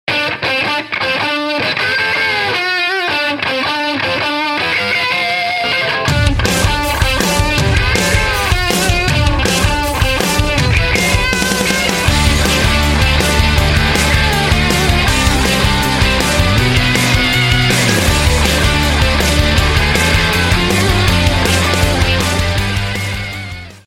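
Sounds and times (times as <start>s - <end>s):
rock and roll music: 0.1s - 23.8s.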